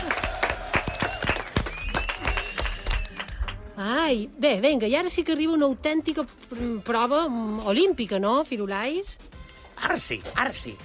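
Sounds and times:
applause: 0:00.0 - 0:03.6
speech: 0:03.8 - 0:10.8.

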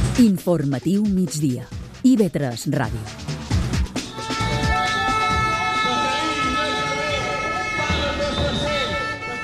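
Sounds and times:
speech: 0:00.2 - 0:03.3
teachers protesting outside parliament: 0:04.1 - 0:09.4.

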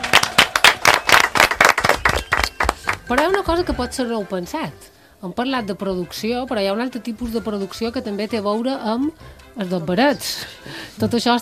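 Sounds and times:
loud applause from a group: 0:00.0 - 0:03.3
speech: 0:03.1 - 0:11.3.

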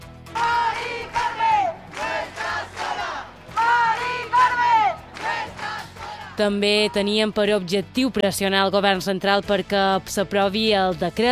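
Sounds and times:
protest crowd chanting in a square: 0:00.4 - 0:06.4
speech: 0:06.4 - 0:11.3.

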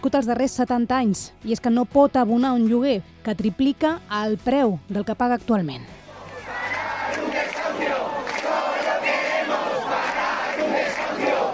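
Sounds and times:
speech: 0:00.0 - 0:06.0
crowd of protesters at an eviction: 0:06.0 - 0:11.5.

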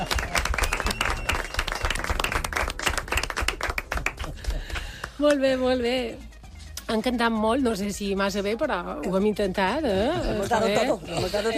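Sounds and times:
audience applause: 0:00.0 - 0:04.9
speech: 0:05.2 - 0:06.3, 0:06.9 - 0:11.5.

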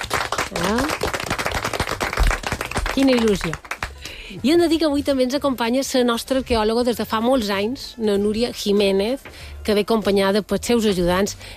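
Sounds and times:
small group clapping in radio studios as guests are welcomed: 0:00.0 - 0:04.2
speech: 0:00.5 - 0:01.1, 0:03.0 - 0:03.7, 0:04.3 - 0:11.5.

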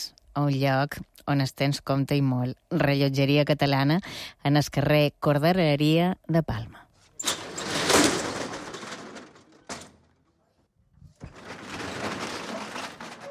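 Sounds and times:
speech: 0:00.0 - 0:06.8
metal shop shutter being raised: 0:07.2 - 0:10.3, 0:11.2 - 0:13.2.

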